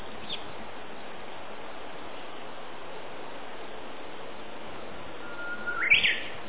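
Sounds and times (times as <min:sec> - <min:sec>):
Japanese bush warbler song: 0:00.2 - 0:00.5, 0:05.2 - 0:06.4.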